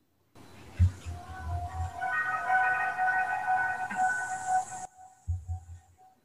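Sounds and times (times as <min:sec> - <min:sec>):
people speaking: 0:00.5 - 0:04.8
echoing trumpet theme from a film score: 0:01.1 - 0:05.2.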